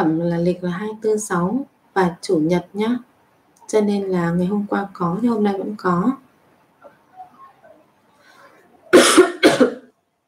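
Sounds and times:
speech: 0.0 - 3.1, 3.7 - 6.2
coughing: 8.9 - 10.0.

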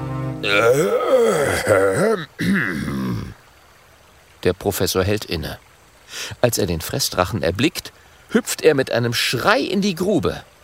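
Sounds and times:
speech: 0.4 - 3.0, 4.4 - 10.5
throat clearing: 0.5 - 3.3.

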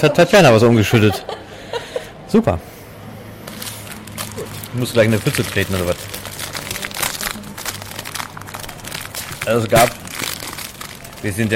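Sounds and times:
speech: 0.0 - 1.4, 2.3 - 2.7, 4.7 - 6.1, 9.5 - 10.0, 11.2 - 11.5
laughter: 0.7 - 2.3
plastic bag of packaged croissants crinkling in Italy: 3.4 - 11.5.

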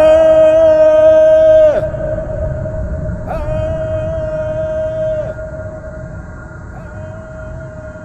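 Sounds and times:
man's loud drawn-out shout echoing: 0.0 - 2.0, 3.3 - 5.5, 6.8 - 8.0.

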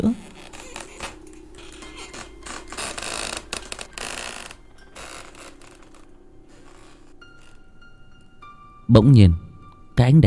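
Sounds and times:
speech: 0.0 - 0.2, 8.9 - 9.4, 10.0 - 10.2
creaking rocking chair: 0.0 - 7.9.

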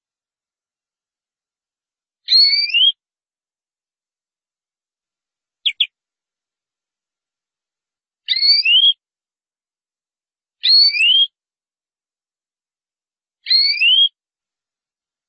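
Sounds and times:
canary song whistling: 2.3 - 3.0, 5.6 - 5.9, 8.3 - 9.0, 10.6 - 11.3, 13.5 - 14.1.

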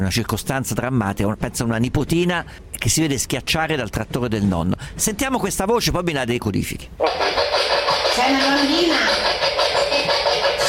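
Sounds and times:
speech: 0.0 - 7.4, 8.2 - 10.5
radio scanner static noise from a Spirit Box: 7.0 - 10.6.

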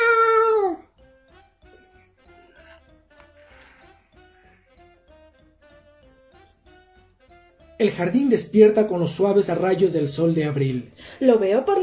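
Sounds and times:
cat meowing in a garden: 0.0 - 0.9
speech: 7.8 - 11.8.

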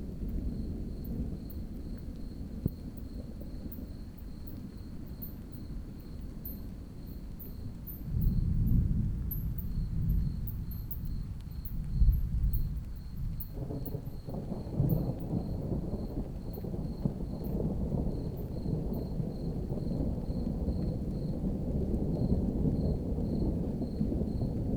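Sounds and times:
crickets trilling in a village garden: 0.1 - 24.6.

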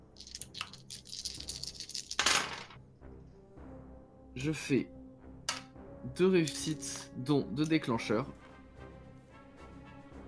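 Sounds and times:
six dice rattling across a hard surface: 0.0 - 2.8
speech: 4.4 - 5.0, 6.1 - 8.4.

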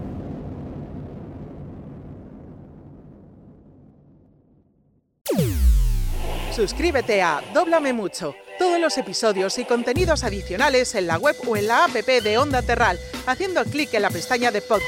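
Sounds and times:
spacecraft take-off sound effect roar: 5.3 - 8.5
bright whooshing sweep: 5.3 - 9.6
speech: 6.6 - 14.8.

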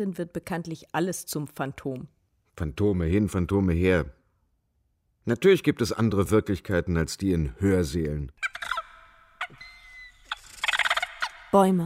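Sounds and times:
speech: 0.0 - 4.2, 5.2 - 8.4, 11.5 - 11.8
parrots squawking as they fly up from trees: 8.4 - 11.8.

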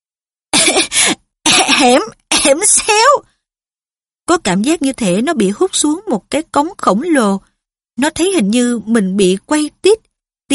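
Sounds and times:
person coughing after swallowing ash: 0.6 - 2.6
speech: 1.8 - 3.3, 4.3 - 10.5.

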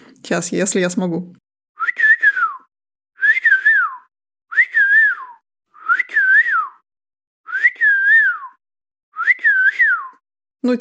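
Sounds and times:
speech: 0.3 - 1.4
person whistling imitating a golden oriole's call: 1.8 - 6.8, 7.4 - 10.2.

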